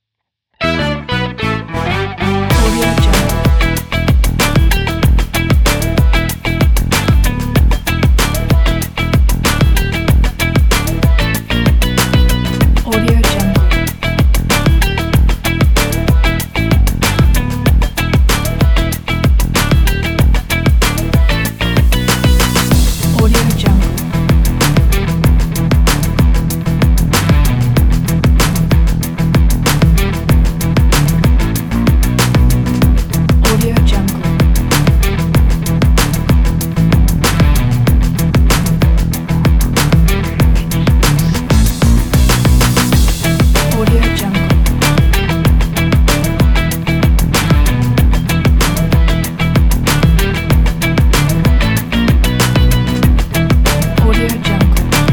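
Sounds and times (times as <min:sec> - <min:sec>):
upbeat funky music: 0:00.6 - 0:55.1.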